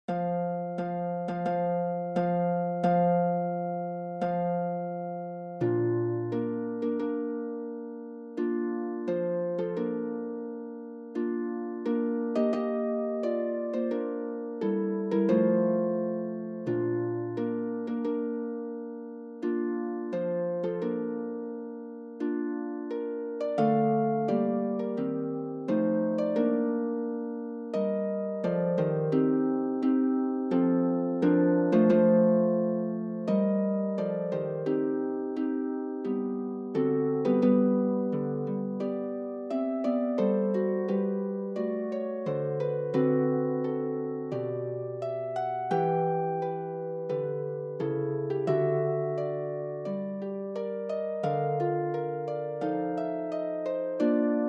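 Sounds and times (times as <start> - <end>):
harp: 0.0 - 54.4.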